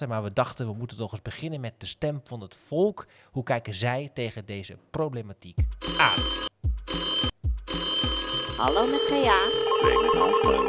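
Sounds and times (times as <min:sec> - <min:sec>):
speech: 0:00.0 - 0:07.0, 0:08.6 - 0:10.6
telephone bell ringing: 0:05.8 - 0:10.6.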